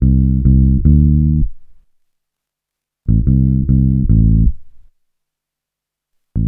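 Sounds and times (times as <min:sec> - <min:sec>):
bass grooves: 0:00.0 - 0:01.6, 0:03.1 - 0:04.6.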